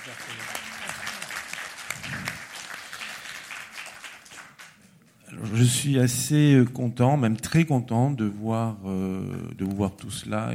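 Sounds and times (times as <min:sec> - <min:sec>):
speech: 0:00.0 - 0:00.6, 0:05.4 - 0:10.5
audience applause: 0:00.0 - 0:04.9.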